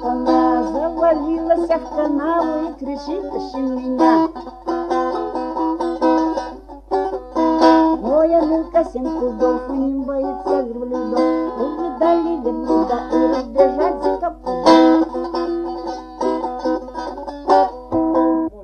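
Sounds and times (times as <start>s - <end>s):
chastushki singing: 0.0s - 5.5s, 7.4s - 16.0s
balalaika playing: 0.0s - 18.6s.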